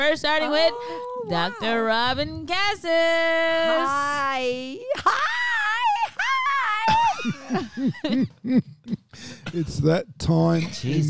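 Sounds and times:
speech: 0.0 - 5.4, 6.9 - 11.0
laughter: 6.1 - 8.7
cough: 8.5 - 9.9.

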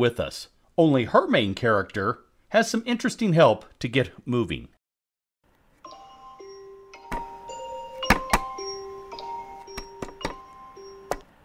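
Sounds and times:
speech: 0.0 - 4.8
alarm clock going off: 5.9 - 11.2.

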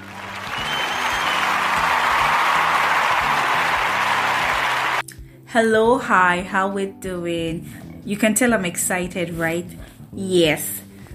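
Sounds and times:
round of applause for the class of 2020: 0.0 - 5.0
speech: 5.5 - 11.1.

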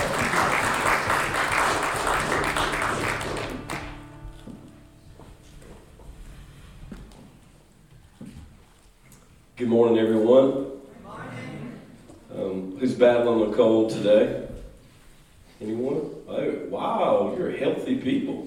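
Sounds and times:
room full of people applauding: 0.0 - 4.1
scattered shuffles and light taps in an echoing hall: 4.3 - 9.5
speech: 9.6 - 10.7, 12.9 - 14.4, 15.6 - 18.4.

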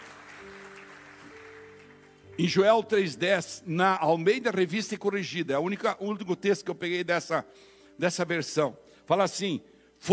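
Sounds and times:
audience applause: 0.0 - 2.3
speech: 2.4 - 10.1.

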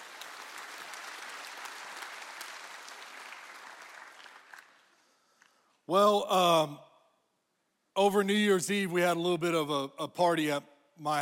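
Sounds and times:
audience clapping: 0.0 - 5.7
speech: 5.9 - 6.9, 8.0 - 11.1.

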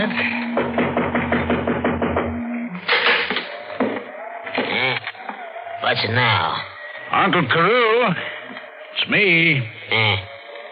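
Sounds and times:
low steady hum: 0.0 - 3.7
knocking on a door: 0.5 - 2.4
speech: 5.9 - 10.3.

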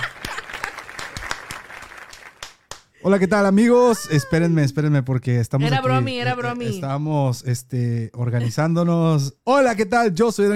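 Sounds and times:
audience applause: 0.0 - 2.8
speech: 3.0 - 10.5.

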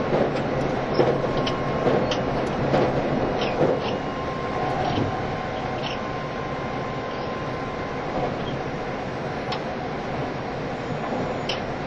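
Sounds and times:
train rumbling: 0.0 - 11.8.

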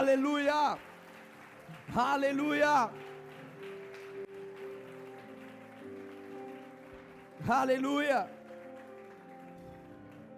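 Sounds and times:
speech: 0.0 - 0.9, 1.7 - 3.1, 7.4 - 8.4
loud applause: 0.0 - 10.3.

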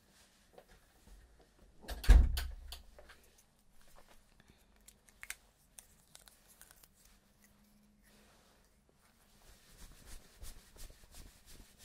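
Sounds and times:
door closing thud: 1.9 - 2.7.

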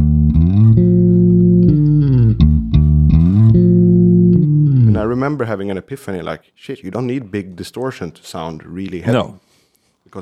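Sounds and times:
deep bass guitar riff: 0.0 - 5.4
speech: 5.1 - 9.4.

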